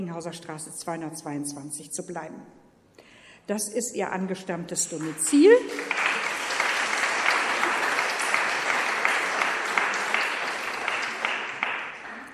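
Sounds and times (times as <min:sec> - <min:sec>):
speech: 0:00.0 - 0:02.6, 0:03.4 - 0:06.0
audience clapping: 0:04.8 - 0:12.3.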